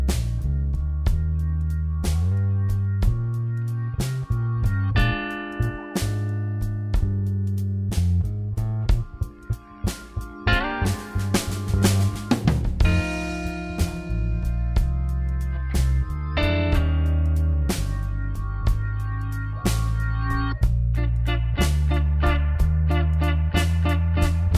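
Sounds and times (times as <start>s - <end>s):
slow blues rhythm in B flat: 0.0s - 24.5s.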